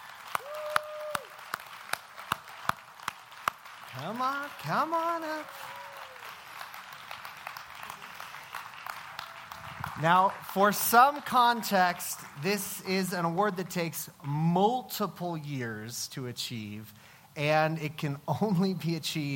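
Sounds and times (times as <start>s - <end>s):
audience applause: 0.0s - 12.4s
speech: 4.0s - 5.8s, 10.0s - 19.3s.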